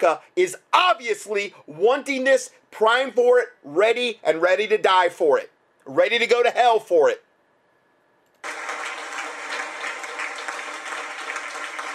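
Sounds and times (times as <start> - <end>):
speech: 0.0 - 7.2
audience clapping in played clip: 8.4 - 11.9.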